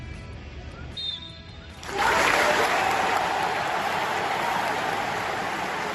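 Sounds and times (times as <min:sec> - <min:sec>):
stadium crowd ovation after minute's silence at Old Trafford: 0:01.8 - 0:05.9.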